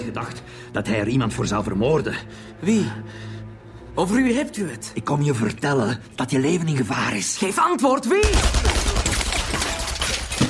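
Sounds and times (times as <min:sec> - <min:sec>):
speech: 0:00.1 - 0:03.4, 0:04.0 - 0:08.7
gunshots: 0:08.2 - 0:10.4.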